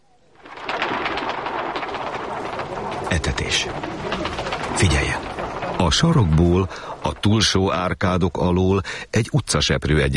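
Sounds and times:
flock of pigeons flying up: 0.2 - 7.7
speech: 3.1 - 10.1.

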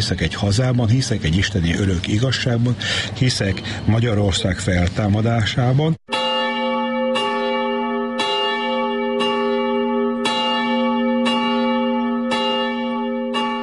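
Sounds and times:
speech: 0.0 - 6.1
church bell ringing: 6.1 - 13.6.

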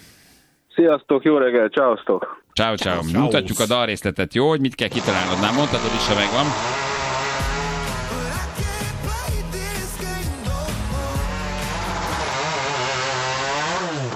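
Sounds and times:
speech: 0.8 - 6.8
chainsaw revving: 4.9 - 14.1.

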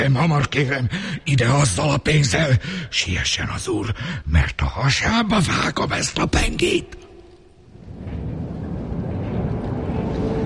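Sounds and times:
speech: 0.0 - 7.0
distant tram rumbling by: 7.7 - 10.4.

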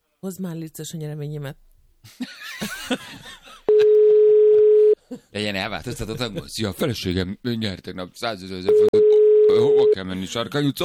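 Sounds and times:
speech: 0.2 - 3.4, 5.1 - 9.0, 10.0 - 10.8
telephone dial tone while someone places a call: 3.7 - 5.0, 8.7 - 9.9.

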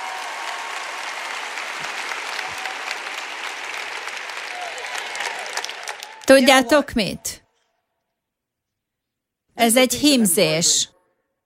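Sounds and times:
audience applause: 0.0 - 6.9
speech: 6.3 - 7.4, 9.6 - 11.0.

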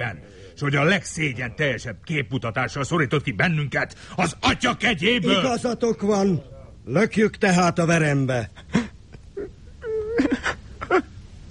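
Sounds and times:
speech: 0.0 - 8.9
boy crying and wailing in a Hungarian radio drama: 9.4 - 11.1.

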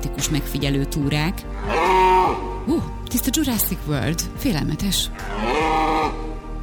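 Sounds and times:
speech: 0.2 - 6.2
red deer stag rutting roar: 1.5 - 3.0, 5.2 - 6.5.

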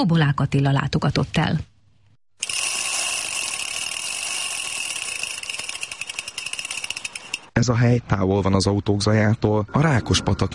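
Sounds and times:
speech: 0.0 - 1.7, 7.6 - 10.5
bicycles passing on a bike path: 2.4 - 7.5.

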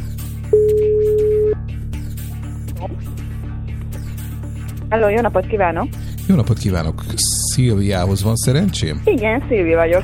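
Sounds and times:
telephone call tone after pressing the call button: 0.5 - 1.6
speech: 4.9 - 10.0.

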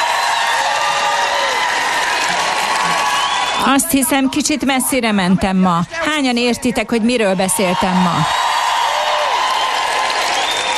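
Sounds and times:
audience applause: 0.0 - 4.3, 7.7 - 10.7
speech: 3.7 - 8.4.

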